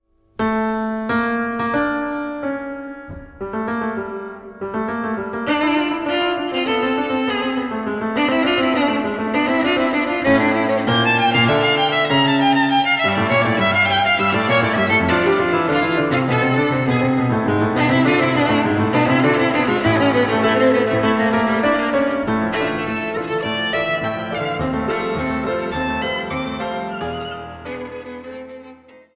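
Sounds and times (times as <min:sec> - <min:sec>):
violin and piano piece: 0:00.4 - 0:29.1.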